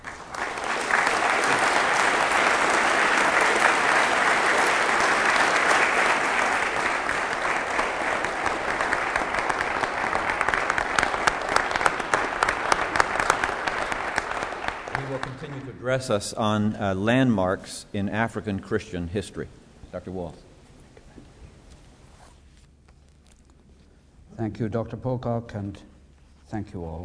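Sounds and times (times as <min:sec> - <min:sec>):
audience applause welcoming a lecturer: 0:00.0 - 0:15.7
speech: 0:15.9 - 0:20.5, 0:24.4 - 0:25.9, 0:26.5 - 0:27.0.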